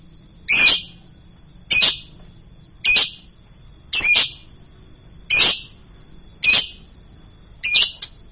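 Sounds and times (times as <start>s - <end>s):
lovebird trilling: 0.5s - 1.0s, 1.7s - 2.1s, 2.8s - 3.3s, 3.9s - 4.5s, 5.3s - 5.8s, 6.4s - 6.8s, 7.6s - 8.1s.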